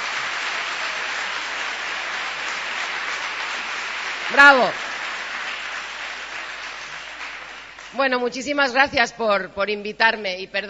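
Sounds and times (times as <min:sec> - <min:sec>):
audience applause: 0:00.0 - 0:08.0
speech: 0:04.3 - 0:04.8, 0:08.0 - 0:10.6.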